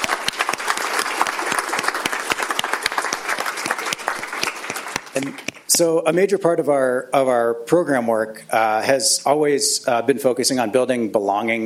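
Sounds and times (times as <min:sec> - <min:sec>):
crowd applause: 0:00.0 - 0:05.7
speech: 0:05.2 - 0:11.6.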